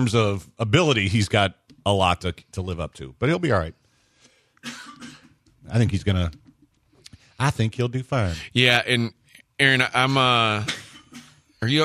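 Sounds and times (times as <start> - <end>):
speech: 0.0 - 3.8, 4.6 - 6.4, 7.4 - 10.8, 11.6 - 11.8
person coughing with something caught in the throat: 4.6 - 5.4, 10.6 - 11.5.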